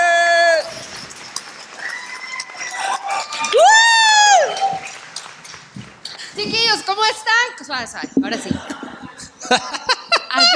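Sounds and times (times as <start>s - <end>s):
audience clapping: 0.0s - 7.0s
laughter: 0.5s - 3.8s, 8.1s - 10.5s
audience whoops and shouts: 1.8s - 4.9s
speech: 6.9s - 8.8s, 9.5s - 10.5s.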